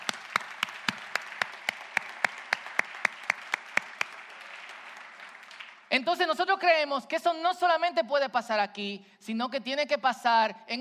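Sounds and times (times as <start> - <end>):
audience applause: 0.0 - 5.9
speech: 6.0 - 10.8.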